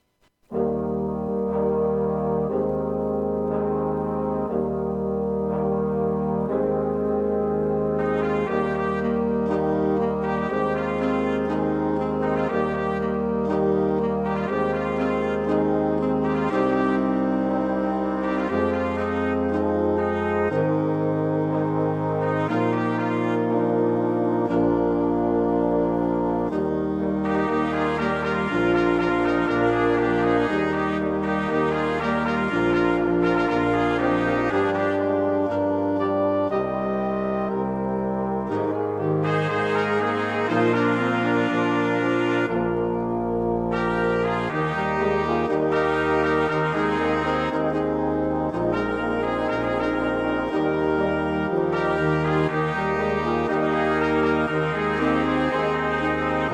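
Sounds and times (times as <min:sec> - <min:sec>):
brass band playing: 0:00.0 - 0:56.5.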